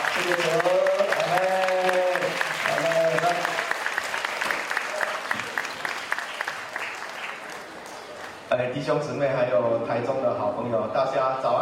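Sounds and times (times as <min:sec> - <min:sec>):
audience applause welcoming speakers: 0:00.0 - 0:08.5
speech: 0:00.2 - 0:01.7, 0:08.6 - 0:11.6.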